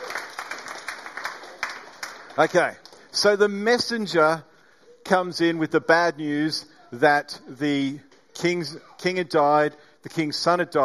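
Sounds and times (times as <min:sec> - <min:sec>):
audience applause for an actor: 0:00.0 - 0:03.0
speech: 0:02.4 - 0:04.5, 0:05.1 - 0:10.8.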